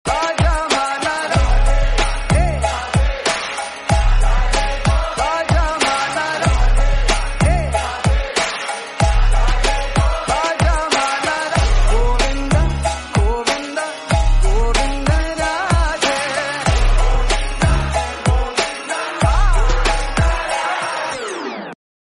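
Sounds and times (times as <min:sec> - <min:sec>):
devotional song ringtone: 0:00.1 - 0:21.8.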